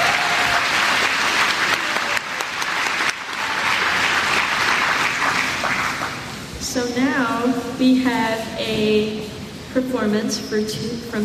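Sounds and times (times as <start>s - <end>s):
audience applause: 0.0s - 6.4s
speech: 7.8s - 11.2s.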